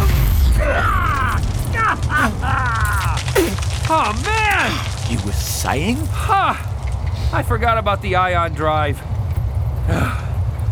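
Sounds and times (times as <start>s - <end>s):
electrical circuits frying and popping: 0.0s - 7.4s
speech: 5.3s - 6.7s, 7.3s - 9.1s, 9.9s - 10.2s.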